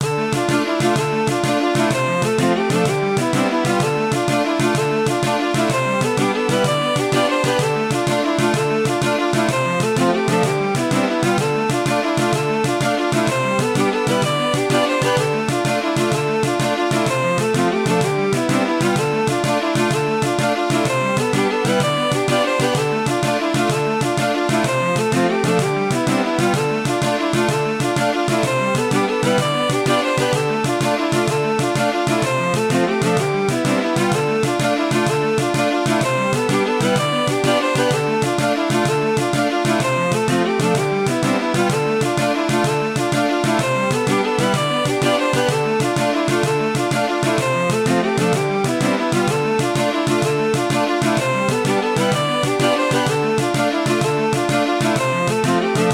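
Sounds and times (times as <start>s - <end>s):
music interlude: 0.0s - 55.9s.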